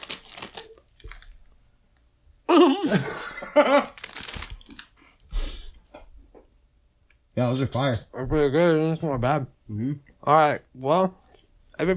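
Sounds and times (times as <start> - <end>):
snack bag crinkling: 0.0 - 1.5, 3.7 - 5.0
speech: 2.6 - 4.0, 7.4 - 11.2
laughter: 2.7 - 4.0.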